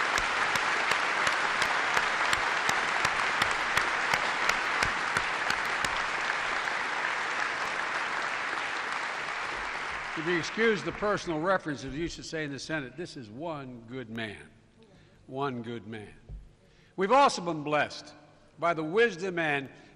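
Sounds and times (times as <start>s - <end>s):
audience applause: 0.0s - 11.4s
speech: 10.2s - 14.5s, 15.3s - 16.2s, 17.0s - 19.8s.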